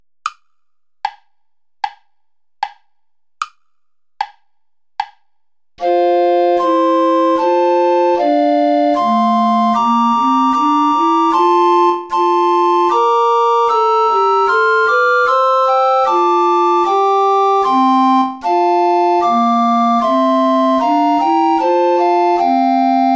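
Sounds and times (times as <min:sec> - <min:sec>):
recorder ensemble play-along music without tenor recorder: 0:05.8 - 0:23.1.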